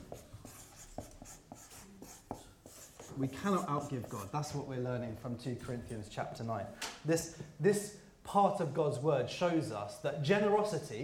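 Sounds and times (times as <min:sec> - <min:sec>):
handwriting strokes writing a word: 0:00.0 - 0:04.6
speech: 0:03.2 - 0:11.0.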